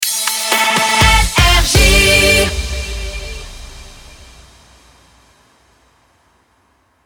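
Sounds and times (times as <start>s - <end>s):
jingle: 0.0s - 5.1s.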